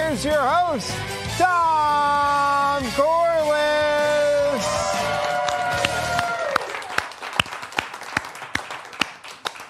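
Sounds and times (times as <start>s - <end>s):
speech: 0.2s - 4.0s
audience clapping: 4.6s - 9.6s.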